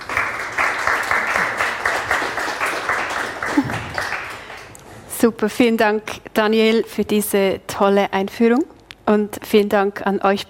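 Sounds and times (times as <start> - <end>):
audience applause: 0.0 - 4.7
speech: 5.2 - 10.4.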